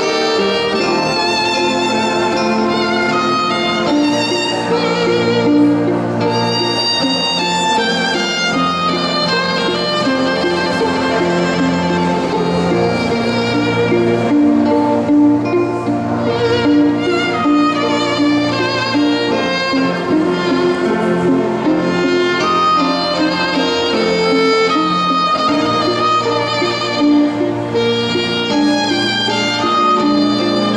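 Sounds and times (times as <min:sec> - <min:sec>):
keyboard: 0:00.0 - 0:30.7
string quartet: 0:00.0 - 0:30.7.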